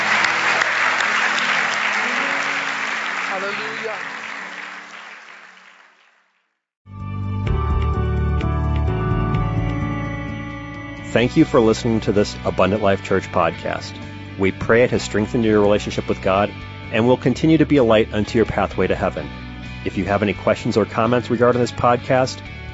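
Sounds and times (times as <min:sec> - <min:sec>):
music: 0:00.0 - 0:05.4, 0:06.9 - 0:22.7
congregation clapping hands during a church service: 0:00.0 - 0:06.4
speech: 0:11.1 - 0:22.6.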